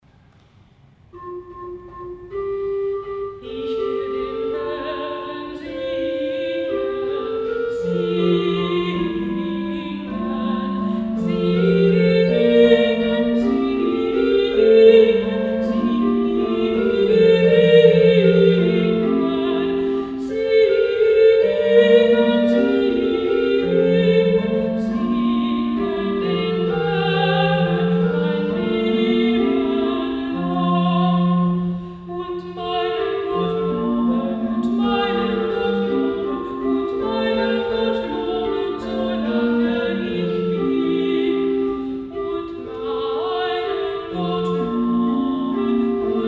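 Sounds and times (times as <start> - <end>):
alto voice singing: 1.2 - 46.2.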